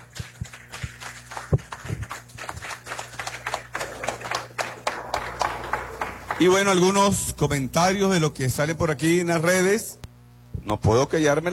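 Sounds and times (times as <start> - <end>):
audience applause: 0.0 - 7.2
low hum: 0.0 - 11.5
speech: 6.4 - 10.0, 10.6 - 11.5.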